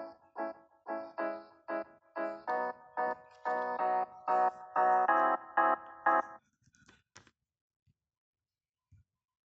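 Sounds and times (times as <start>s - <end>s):
instrumental music: 0.0s - 6.4s.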